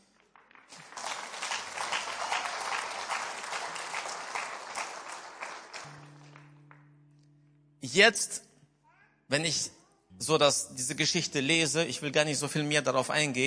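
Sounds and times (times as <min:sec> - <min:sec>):
audience applause: 0:00.0 - 0:06.8
speech: 0:07.8 - 0:08.5, 0:09.3 - 0:13.4.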